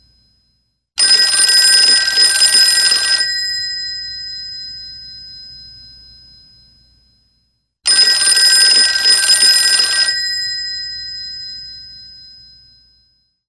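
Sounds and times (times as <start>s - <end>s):
old style telephone ringing: 1.0s - 4.7s, 7.9s - 11.8s.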